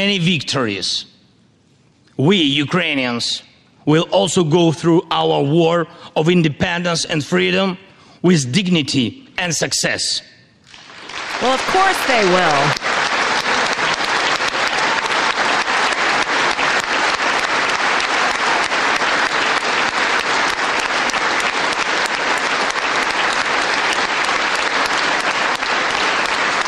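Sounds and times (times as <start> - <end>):
speech: 0.0 - 1.1, 2.2 - 10.4, 11.4 - 12.8
large audience applause: 10.7 - 26.6.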